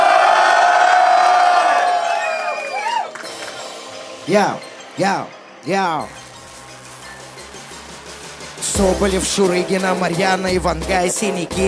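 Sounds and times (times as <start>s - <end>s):
crowd cheering and shouting: 0.0s - 3.6s
speech: 4.3s - 6.2s, 8.8s - 11.6s.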